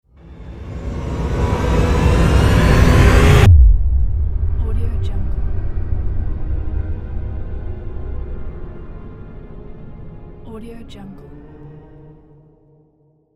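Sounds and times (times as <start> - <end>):
epic trailer hit: 0.2 - 10.0
cinematic swoosh: 0.3 - 10.1.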